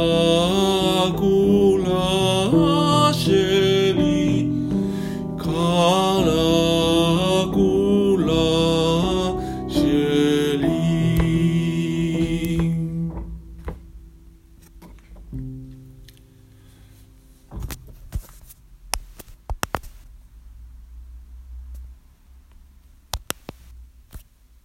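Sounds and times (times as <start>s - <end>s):
Hebrew love songs: 0.0s - 17.5s.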